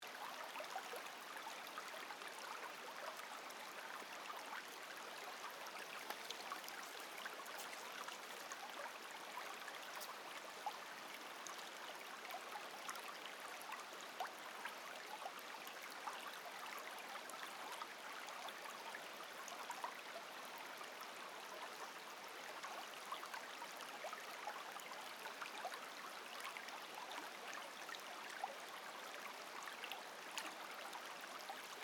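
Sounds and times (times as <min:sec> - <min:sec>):
gentle brook flowing: 0:00.0 - 0:31.8.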